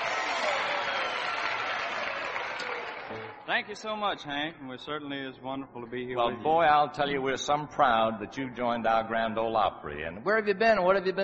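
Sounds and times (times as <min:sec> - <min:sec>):
audience applause welcoming a guest on a Grand Ole Opry country music show: 0:00.0 - 0:04.0
speech: 0:02.6 - 0:11.2.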